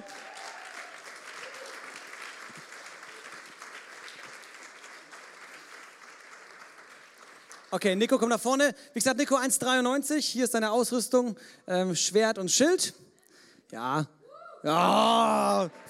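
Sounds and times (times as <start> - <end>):
audience applause: 0.0 - 8.0
speech: 7.7 - 13.0, 13.7 - 15.8.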